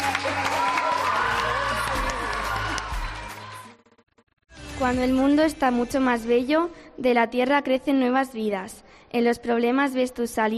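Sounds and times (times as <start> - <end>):
audience clapping: 0.0 - 3.8
speech: 4.8 - 10.5.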